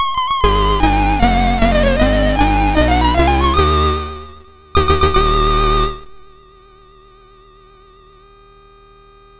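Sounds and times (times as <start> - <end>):
MOS 6581R2 SID chip music: 0.1 - 6.3.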